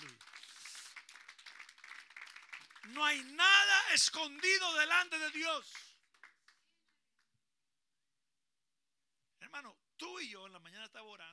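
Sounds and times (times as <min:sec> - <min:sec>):
audience applause: 0:00.0 - 0:05.0
speech: 0:02.9 - 0:05.8, 0:10.2 - 0:11.3.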